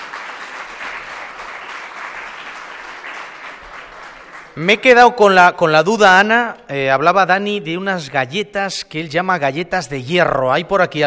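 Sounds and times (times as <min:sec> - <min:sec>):
applause: 0:00.0 - 0:05.2
speech: 0:04.6 - 0:11.0.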